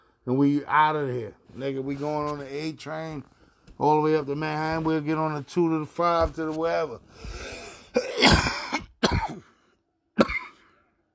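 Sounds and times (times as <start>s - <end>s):
speech: 0.2s - 7.6s
harsh coughing fit: 7.6s - 9.6s, 10.2s - 10.8s.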